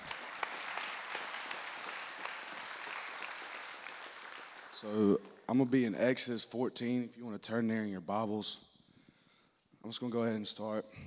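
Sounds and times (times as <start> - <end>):
audience round of applause: 0.0 - 5.5
speech: 4.8 - 8.7, 9.9 - 11.0.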